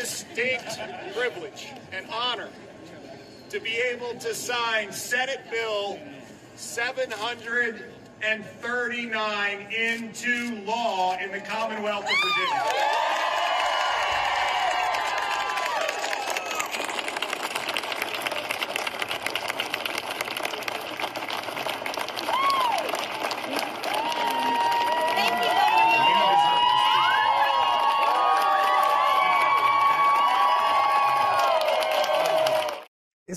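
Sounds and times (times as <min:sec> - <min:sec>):
speech: 0:00.4 - 0:13.2
outdoor crowd cheering: 0:12.1 - 0:32.9.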